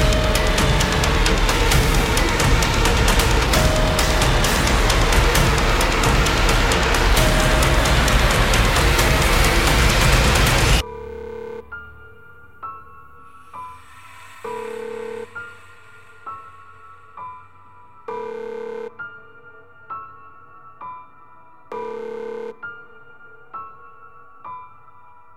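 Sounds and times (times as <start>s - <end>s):
aggressive drum kit: 0.0s - 10.8s.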